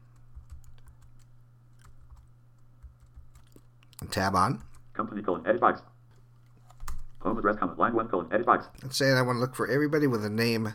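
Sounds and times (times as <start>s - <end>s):
faint steady hum: 0.0s - 10.7s
typing a name on a computer keyboard: 0.2s - 4.9s
speech: 4.1s - 5.9s, 7.2s - 10.7s.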